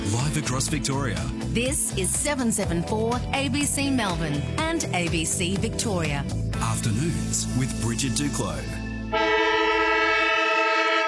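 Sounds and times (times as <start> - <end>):
speech: 0.1 - 9.3
football ground siren: 9.1 - 11.0.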